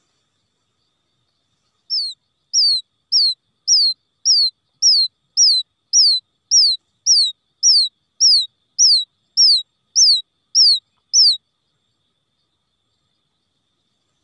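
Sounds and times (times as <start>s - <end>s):
quail chick distress peeps: 1.8s - 11.4s.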